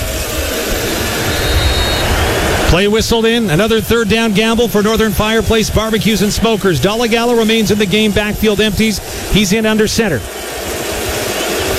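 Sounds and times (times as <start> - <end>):
stadium crowd roaring: 0.0 - 11.7
speech: 2.7 - 10.5.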